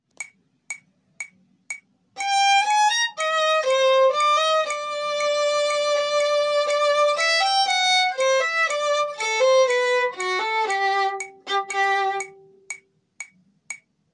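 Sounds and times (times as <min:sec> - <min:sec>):
metronome clicking: 0:00.1 - 0:14.0
music excerpt C: 0:02.2 - 0:12.8.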